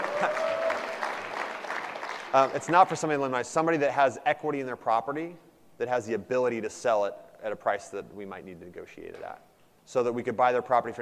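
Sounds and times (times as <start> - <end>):
audience applause: 0.0 - 2.6
speech: 2.3 - 11.0.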